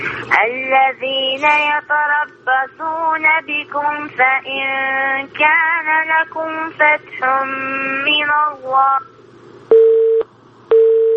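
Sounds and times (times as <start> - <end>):
speech: 0.3 - 9.1
telephone busy tone after a phone call drops: 9.7 - 11.1.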